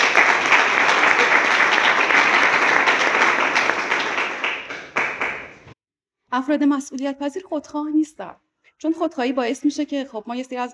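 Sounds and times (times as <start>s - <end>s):
audience applause: 0.0s - 5.7s
speech: 6.4s - 10.7s.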